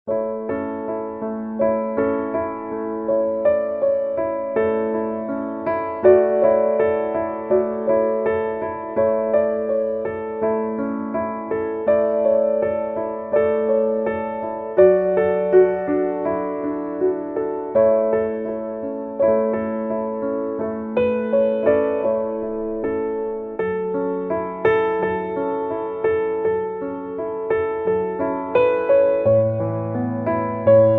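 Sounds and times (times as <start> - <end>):
classical piano: 0.0 - 30.9.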